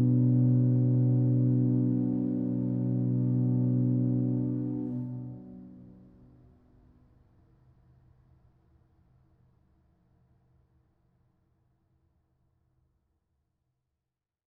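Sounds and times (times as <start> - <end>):
organ playing: 0.0 - 5.9.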